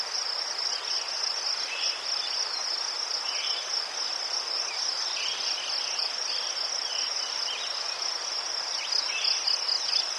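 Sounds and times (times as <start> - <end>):
crickets chirping: 0.0 - 10.1.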